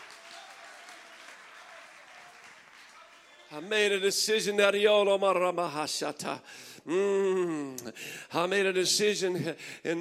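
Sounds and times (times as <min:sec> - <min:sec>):
audience clapping hands: 0:00.0 - 0:04.0
speech: 0:03.5 - 0:09.9.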